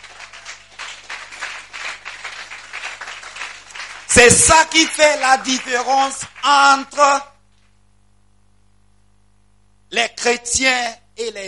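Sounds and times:
church congregation applauding during a sermon: 0.0 - 7.2
speech: 4.2 - 7.3, 9.9 - 11.4.

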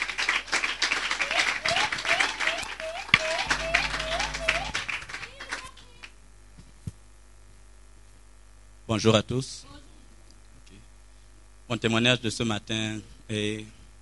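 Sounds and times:
church congregation applauding to welcome a member forward: 0.0 - 6.1
speech: 8.9 - 9.7, 11.7 - 13.8.

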